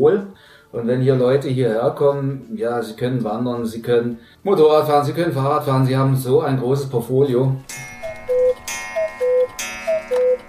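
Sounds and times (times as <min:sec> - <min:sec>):
speech: 0:00.0 - 0:08.0
cuckoo clock calling: 0:07.6 - 0:10.4.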